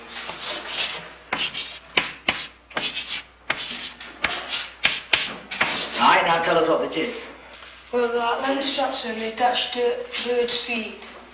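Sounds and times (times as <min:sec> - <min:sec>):
chalk or marker scraping across a board: 0:00.1 - 0:06.0
chalk or marker tapping on a board: 0:01.3 - 0:05.8
speech: 0:06.8 - 0:07.3, 0:07.9 - 0:11.1.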